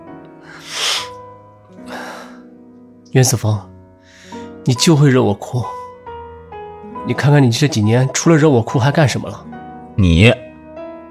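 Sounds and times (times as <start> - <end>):
nose sniffing: 0.5 - 1.2
speech: 3.1 - 3.7, 4.7 - 5.8, 7.1 - 10.4.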